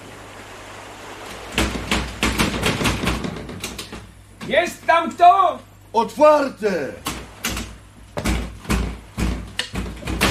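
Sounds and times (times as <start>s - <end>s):
someone banging hard on a door: 1.6s - 4.1s, 7.1s - 10.2s
speech: 4.5s - 7.1s.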